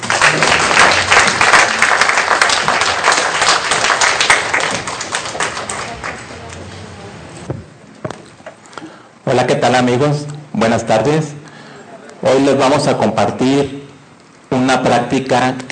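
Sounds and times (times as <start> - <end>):
audience applause: 0.0 - 7.5
speech: 9.3 - 11.4, 12.2 - 13.8, 14.7 - 15.7.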